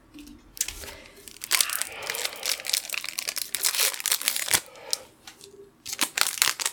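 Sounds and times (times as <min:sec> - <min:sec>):
Lorcana trading card booster pack foil wrapper being torn open: 0:00.6 - 0:04.7, 0:05.8 - 0:06.7.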